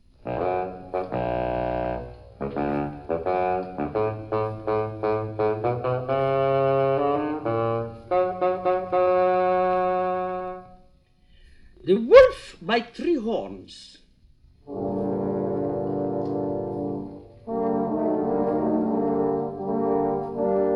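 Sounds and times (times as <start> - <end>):
bassoon playing a low gruff melody: 0.2 - 10.9, 14.7 - 20.7
speech: 12.8 - 14.0.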